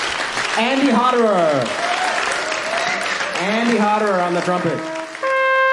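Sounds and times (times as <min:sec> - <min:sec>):
audience applause at a concert: 0:00.0 - 0:05.6
speech: 0:00.6 - 0:01.8, 0:03.4 - 0:04.9
single voice cheering: 0:01.2 - 0:04.8.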